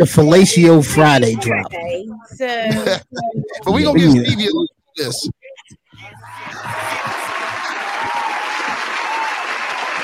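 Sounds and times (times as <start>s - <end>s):
laughter: 0.0s - 5.3s, 6.0s - 10.0s
speech: 0.0s - 5.3s
crowd applause: 6.0s - 10.0s.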